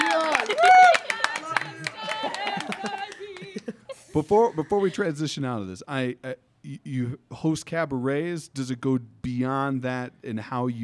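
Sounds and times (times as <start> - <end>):
clapping: 0.0 - 3.8
laughter: 0.0 - 5.2
speech: 4.2 - 10.8.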